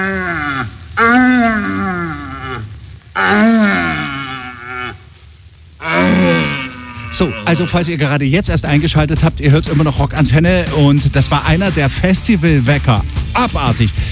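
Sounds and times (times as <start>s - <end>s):
red deer stags grunting and roaring during rut: 0.0s - 5.0s, 5.8s - 7.8s
speech: 7.2s - 14.0s.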